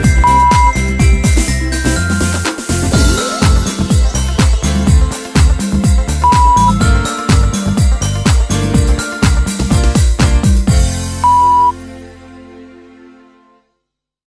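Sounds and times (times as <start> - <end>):
UK Christmas pop music: 0.0 - 12.0.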